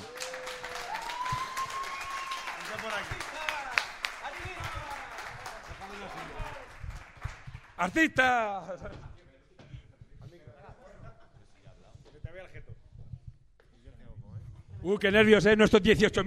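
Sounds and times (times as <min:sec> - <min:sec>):
group clapping: 0:00.0 - 0:08.3
rising whistle: 0:00.9 - 0:02.7
speech: 0:02.8 - 0:03.4, 0:07.8 - 0:09.0, 0:14.8 - 0:16.2
laughter: 0:10.3 - 0:12.0.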